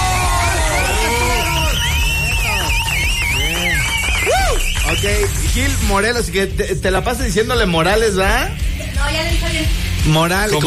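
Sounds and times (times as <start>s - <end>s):
shrill whistles or noisemakers sliding in pitch: 0.0s - 5.3s
crowd applause and cheering: 0.0s - 6.0s
speech: 5.0s - 10.6s.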